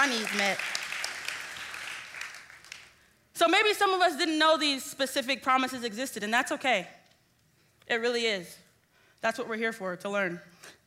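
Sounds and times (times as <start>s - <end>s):
speech: 0.0s - 0.8s, 3.4s - 7.0s, 7.9s - 8.6s, 9.2s - 10.8s
audience clapping: 0.0s - 3.1s.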